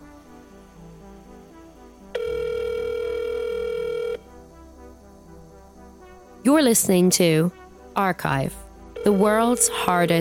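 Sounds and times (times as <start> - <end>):
faint low background: 0.0 - 10.2
telephone ringing: 2.2 - 4.2, 9.0 - 10.2
speech: 6.5 - 10.2.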